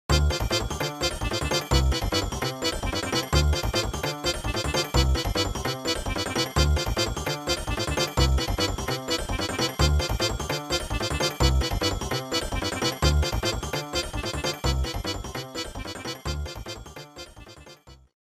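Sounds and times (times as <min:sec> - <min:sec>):
theme music: 0:00.1 - 0:17.7.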